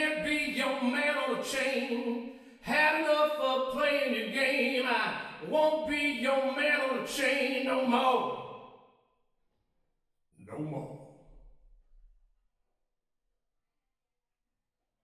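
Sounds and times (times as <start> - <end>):
male voice with wet effects: 0.0 - 8.5, 10.4 - 11.2.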